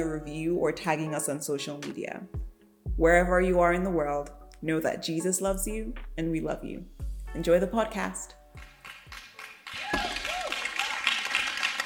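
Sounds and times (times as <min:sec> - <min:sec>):
speech: 0:00.0 - 0:08.4
audience clapping: 0:08.6 - 0:11.8.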